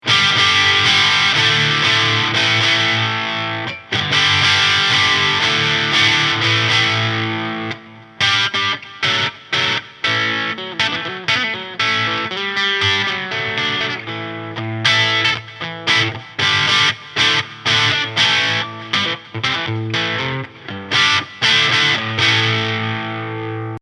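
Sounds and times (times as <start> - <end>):
kong tubefive head crunch amp tone: 0.0 - 23.8.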